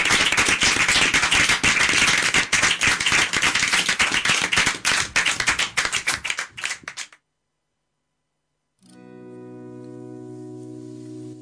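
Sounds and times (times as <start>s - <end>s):
audience applause: 0.0s - 7.2s.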